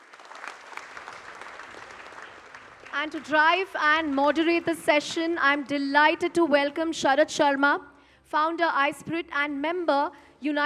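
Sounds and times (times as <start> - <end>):
audience applause at a technology conference: 0.0 - 3.3
speech: 3.0 - 10.6.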